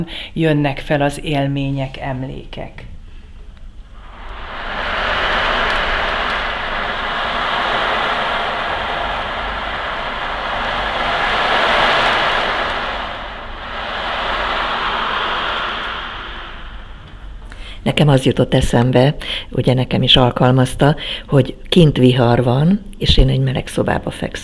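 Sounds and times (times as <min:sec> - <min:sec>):
speech: 0:00.0 - 0:02.9, 0:17.8 - 0:24.4
ocean drum rolling: 0:04.0 - 0:17.5.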